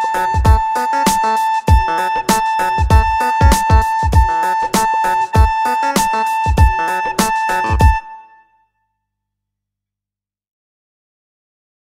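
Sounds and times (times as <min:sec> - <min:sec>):
funk music: 0:00.0 - 0:08.4.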